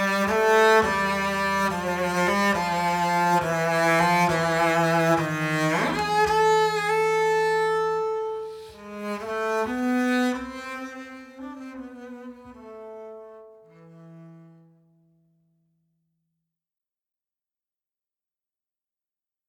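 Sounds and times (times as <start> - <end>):
double bass: 0.0 - 14.8.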